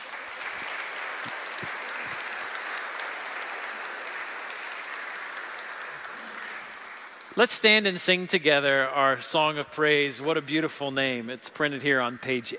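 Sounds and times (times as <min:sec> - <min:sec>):
audience applause: 0:00.0 - 0:08.2
speech: 0:07.4 - 0:12.5.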